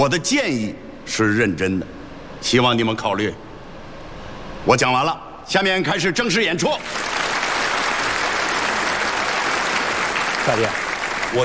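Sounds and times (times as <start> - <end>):
speech: 0.0 - 3.4, 4.6 - 7.1, 10.4 - 11.4
audience applause: 6.8 - 11.4.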